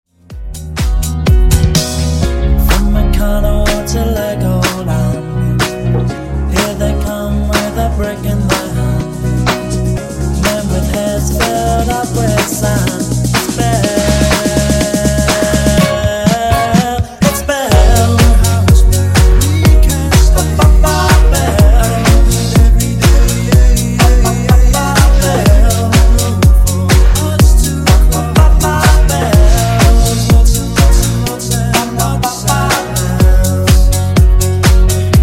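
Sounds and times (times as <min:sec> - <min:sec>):
funk nu disco music: 0:00.1 - 0:35.2.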